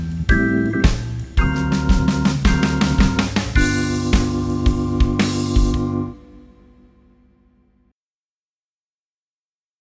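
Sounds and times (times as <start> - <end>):
guitar playing blues and jazz: 0.3 - 6.4.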